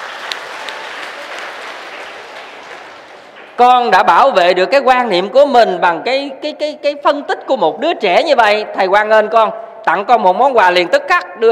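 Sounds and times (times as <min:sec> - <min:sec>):
audience applause at a Buddhist dharma lecture by a monk: 0:00.0 - 0:03.6
speech: 0:03.6 - 0:11.5.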